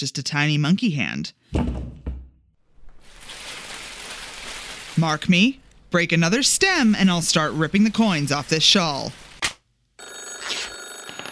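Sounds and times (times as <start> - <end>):
speech: 0.0 - 1.9, 5.0 - 9.2
telephone ringing with electronic trill: 10.0 - 11.3.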